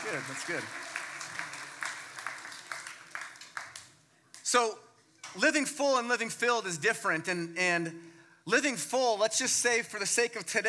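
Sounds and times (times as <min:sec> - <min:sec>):
speech: 0:00.0 - 0:01.0, 0:04.5 - 0:10.6
audience applause: 0:00.0 - 0:03.9.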